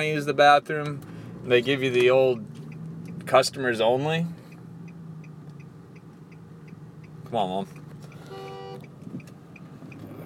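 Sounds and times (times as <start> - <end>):
speech: 0.0 - 2.5, 3.2 - 4.4, 7.3 - 7.8
low rumble of a vehicle: 0.0 - 10.2
faint regular ticking: 0.2 - 10.2
car horn beep: 8.2 - 8.9.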